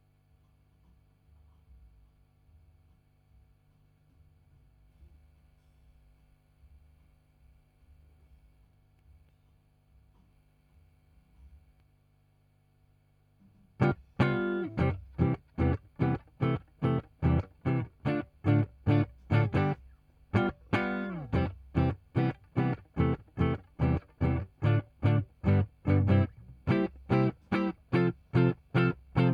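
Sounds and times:
guitar: 13.8s - 29.3s.

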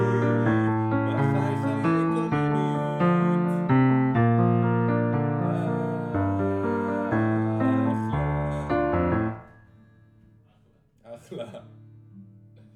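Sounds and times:
piano: 0.0s - 10.4s.

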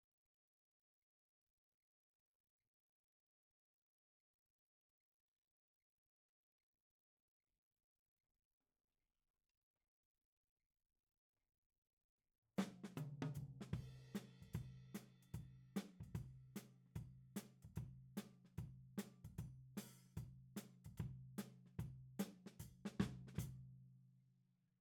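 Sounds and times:
tom drum: 12.6s - 23.6s.

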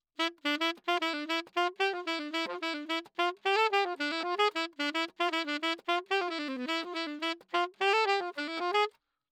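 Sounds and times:
saxophone: 0.2s - 9.0s.

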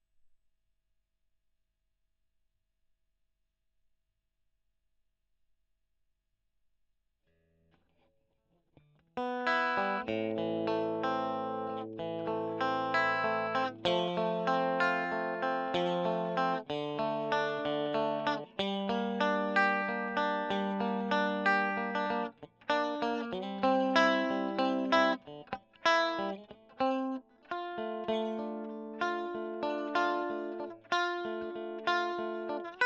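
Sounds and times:
electric guitar recorded with a Gefell microphone: 8.8s - 32.8s.

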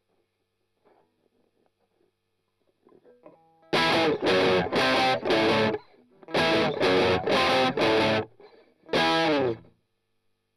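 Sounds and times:
strummed octaves: 3.8s - 8.3s.

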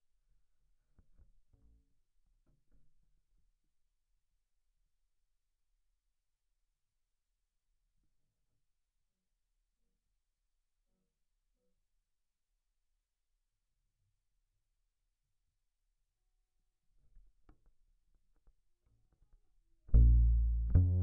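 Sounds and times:
bass guitar recorded by direct input: 19.9s - 21.0s.

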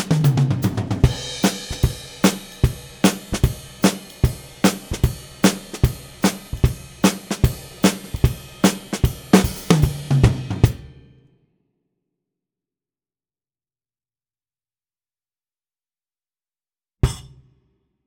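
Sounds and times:
ragtime drums: 0.0s - 11.0s.

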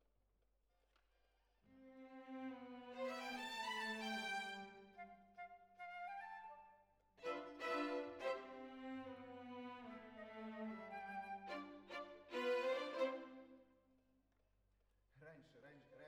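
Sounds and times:
violins: 1.7s - 5.1s, 7.2s - 13.6s.

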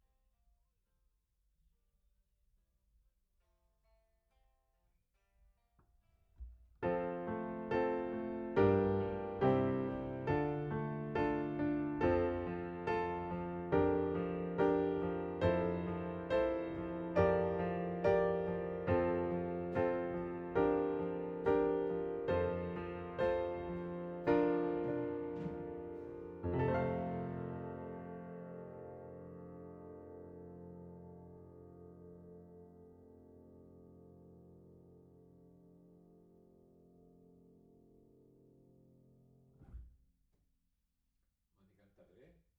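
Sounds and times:
piano note A: 6.8s - 38.6s.

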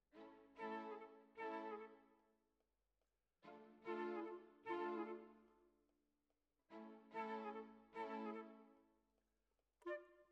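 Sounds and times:
flute: 0.5s - 2.2s, 3.5s - 5.6s, 7.0s - 8.8s, 9.8s - 10.3s.

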